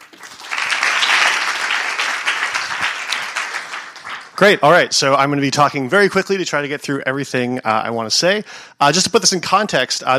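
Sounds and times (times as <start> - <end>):
audience applause: 0.0 - 4.8
speech: 4.4 - 10.1.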